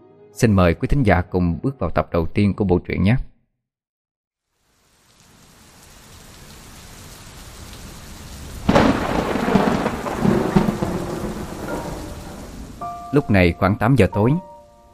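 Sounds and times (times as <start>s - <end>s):
speech: 0.4s - 3.3s, 13.1s - 14.5s
heavy rain at night: 4.4s - 13.3s
thunder: 8.6s - 12.8s.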